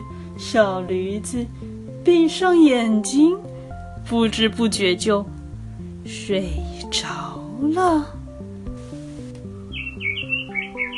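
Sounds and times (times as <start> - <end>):
speech: 0.4 - 5.4, 6.0 - 8.2
bird chirping: 9.6 - 10.9.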